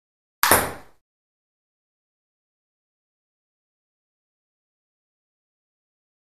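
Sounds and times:
ping pong ball serve: 0.4s - 1.0s.

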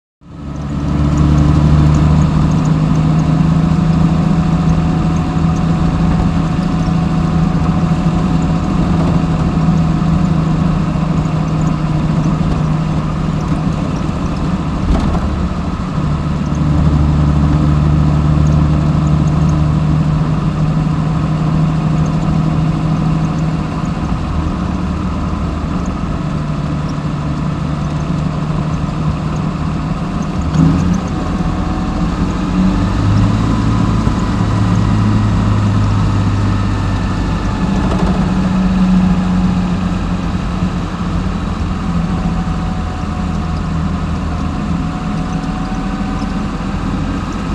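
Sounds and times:
Austin Sixteen interior at constant speed with gear changes, slow, bumpy and rattly: 0.3s - 47.5s.

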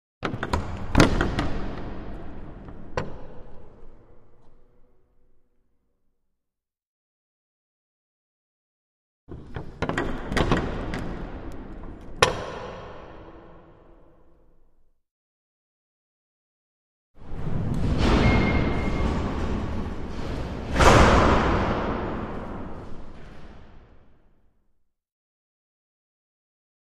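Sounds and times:
large wooden front doors opening in reverberant interior: 0.2s - 4.7s, 9.3s - 14.3s, 17.2s - 24.2s.

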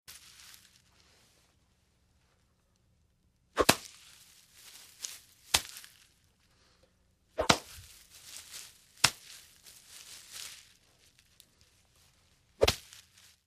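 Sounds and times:
machete hacking in jungle: 3.6s - 4.0s, 5.5s - 5.9s, 7.4s - 7.9s, 9.0s - 9.3s, 12.6s - 13.0s.

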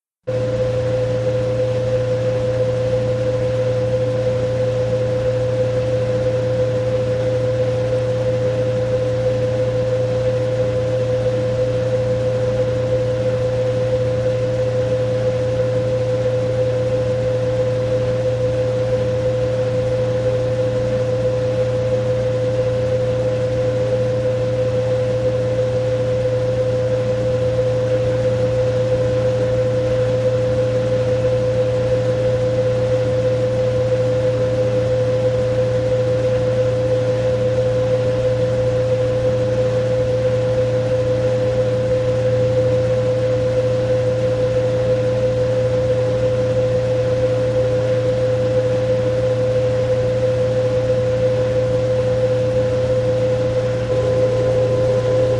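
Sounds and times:
washing machine spin cycle: 0.3s - 55.3s.

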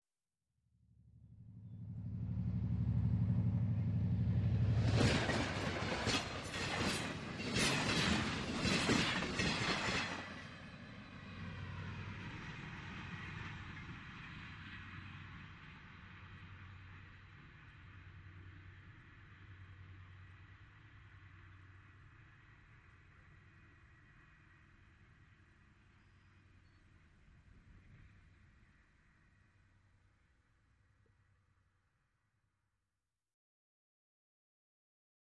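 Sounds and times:
train passing by very fast: 1.7s - 16.7s.

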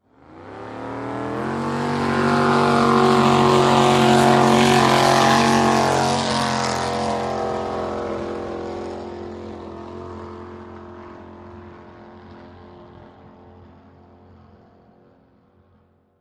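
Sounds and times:
drag boat engine starting: 0.8s - 9.2s.

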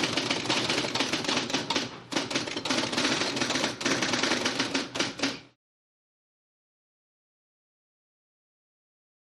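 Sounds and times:
modern electric typewriter typing: 0.0s - 5.5s.

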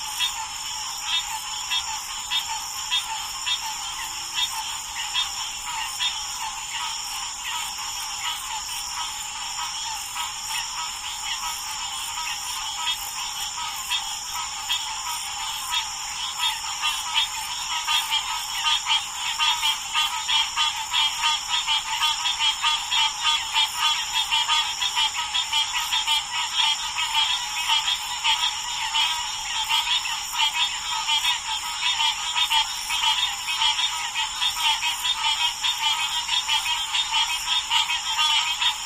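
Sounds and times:
frogs croaking in close perspective: 0.0s - 38.8s
medium distant cricket chirps: 0.0s - 38.8s.

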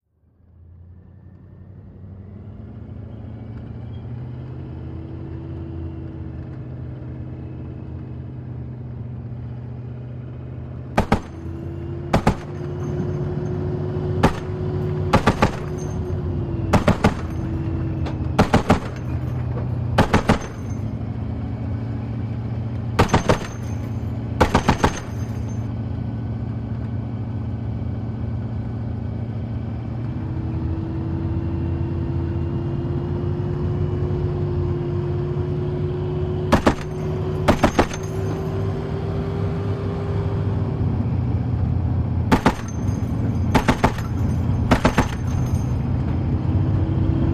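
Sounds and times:
APC interior driving: 0.1s - 47.3s
dual 50 caliber machine gun firing: 11.0s - 11.5s, 12.1s - 12.9s, 14.2s - 16.0s, 16.7s - 17.6s, 18.4s - 19.2s, 20.0s - 20.8s, 23.0s - 23.8s, 24.4s - 25.3s, 36.5s - 38.2s, 42.3s - 45.4s.

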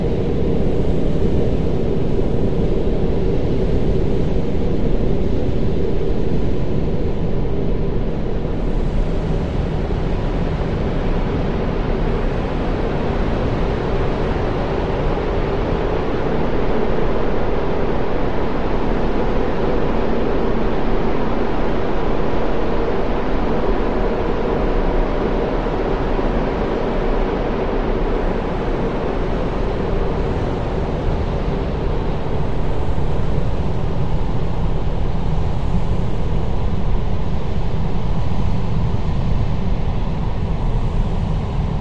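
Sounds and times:
heavy airy ambient wash: 0.0s - 41.7s.

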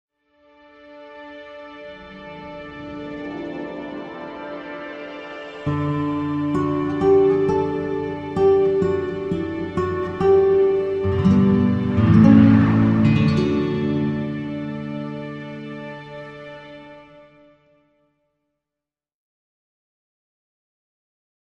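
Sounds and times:
classical guitar music logo: 1.3s - 17.4s.

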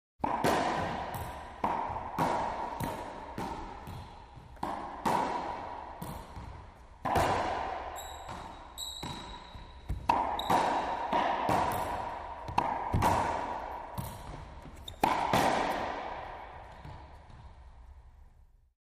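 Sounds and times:
reverberant racquetball ball hits in a volley: 0.2s - 18.4s
sneaker squeaks: 7.9s - 11.0s, 14.0s - 15.3s.

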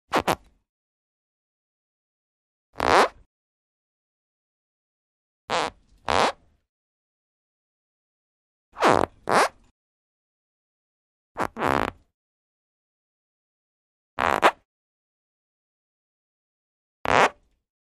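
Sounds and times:
skin stretching friction: 0.1s - 0.5s, 2.8s - 3.2s, 5.5s - 6.4s, 8.8s - 9.6s, 11.4s - 12.0s, 14.2s - 14.6s, 17.1s - 17.4s.

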